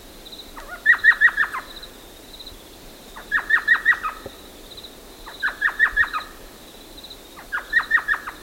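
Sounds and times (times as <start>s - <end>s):
thrush nightingale singing staccato phrases: 0.0s - 8.4s.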